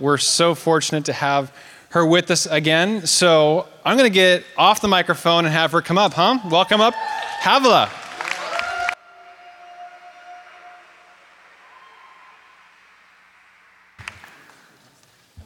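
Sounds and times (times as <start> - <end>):
speech: 0.0 - 8.0
audience clapping: 6.3 - 14.8.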